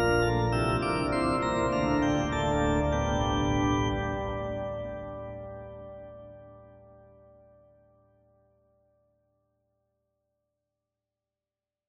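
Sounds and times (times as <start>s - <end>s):
cathedral organ playing: 0.0s - 7.0s.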